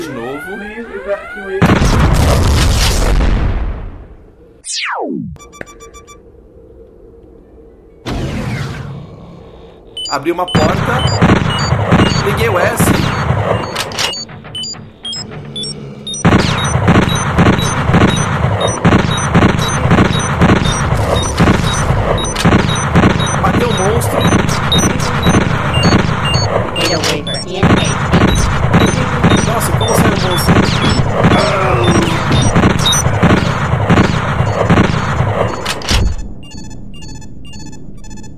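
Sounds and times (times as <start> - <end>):
rumbling background: 0.0 - 38.3
speech: 0.4 - 2.6, 10.1 - 11.4, 12.2 - 12.9
video game gunfire killing monsters: 1.3 - 3.5, 10.5 - 38.3.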